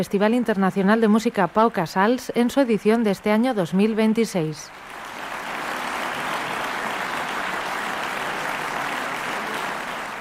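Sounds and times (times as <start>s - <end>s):
speech: 0.0s - 5.0s
concert audience applause: 4.7s - 10.1s.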